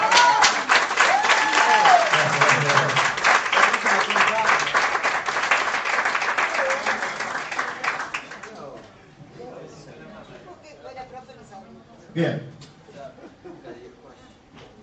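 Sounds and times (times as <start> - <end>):
audience applause: 0.0 - 8.7
laughter: 2.1 - 3.2, 12.9 - 14.2.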